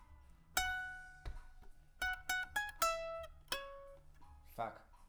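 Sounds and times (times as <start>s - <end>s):
guitar: 0.6s - 4.6s.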